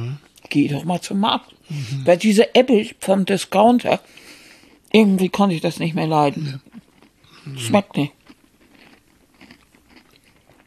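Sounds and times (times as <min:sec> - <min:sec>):
speech: 0:00.5 - 0:04.2, 0:04.9 - 0:06.7, 0:07.4 - 0:08.2
people chewing and eating food: 0:01.7 - 0:02.0, 0:04.0 - 0:05.0, 0:05.9 - 0:10.6.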